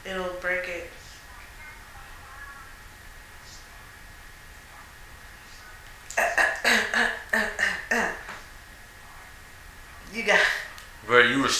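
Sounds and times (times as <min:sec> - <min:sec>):
coughing: 0:06.0 - 0:08.8, 0:10.1 - 0:11.5.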